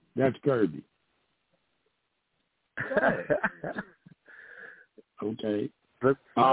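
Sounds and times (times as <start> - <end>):
speech: 0.2 - 0.9, 2.9 - 3.9, 5.2 - 6.5
laughter: 2.8 - 4.0
heavy breathing: 4.2 - 5.0.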